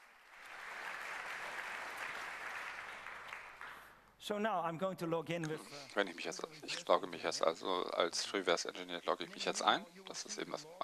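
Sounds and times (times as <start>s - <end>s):
crowd applause in a hall: 0.0s - 4.0s
speech: 4.2s - 10.8s.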